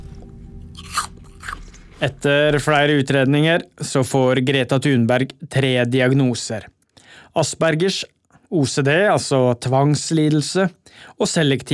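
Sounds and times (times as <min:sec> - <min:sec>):
low steady hum: 0:00.0 - 0:03.8
crunchy bites into a green apple: 0:00.7 - 0:02.1
speech: 0:02.0 - 0:06.8, 0:07.4 - 0:11.7.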